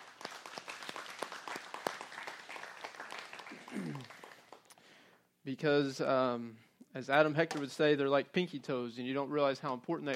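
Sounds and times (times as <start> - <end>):
crowd applauding: 0.0 - 4.8
speech: 5.5 - 10.1.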